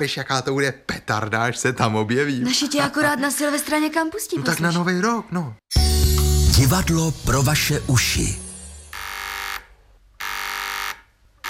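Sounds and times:
speech: 0:00.0 - 0:08.4
radio transceiver call signal buzzing: 0:08.9 - 0:11.4.

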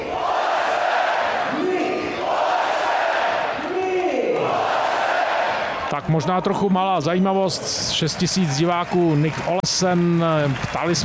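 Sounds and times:
ice hockey crowd at Budvar Arena chanting the goal scorer's name: 0:00.0 - 0:05.9
speech: 0:06.0 - 0:11.0.

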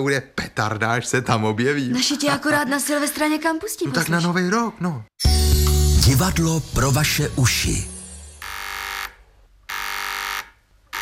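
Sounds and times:
speech: 0:00.0 - 0:07.9
two-way radio call buzzer: 0:08.4 - 0:11.0.

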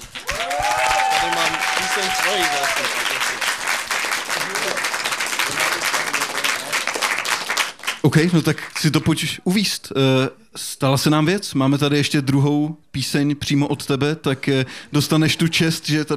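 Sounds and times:
huge applause: 0:00.0 - 0:09.0
speech: 0:02.0 - 0:03.1, 0:08.1 - 0:16.1.

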